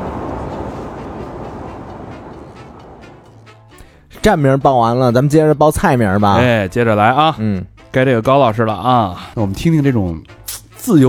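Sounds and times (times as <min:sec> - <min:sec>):
subway train running: 0:00.0 - 0:03.7
speech: 0:04.2 - 0:11.0.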